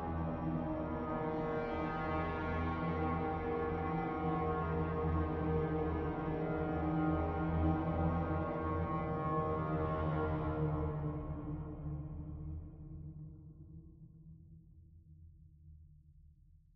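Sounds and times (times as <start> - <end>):
music: 0.0 - 16.7.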